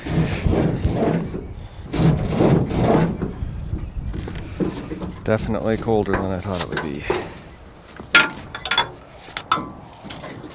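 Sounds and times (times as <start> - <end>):
aluminum boat and yellow canoe dragged off a trailer: 0.0 - 10.5
speech: 5.3 - 7.3.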